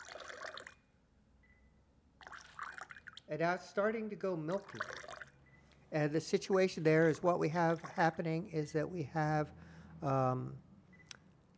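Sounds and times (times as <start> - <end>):
water trickling into a glass: 0.0 - 0.8, 2.2 - 3.3, 4.5 - 5.4
speech: 3.3 - 5.1, 5.9 - 10.6.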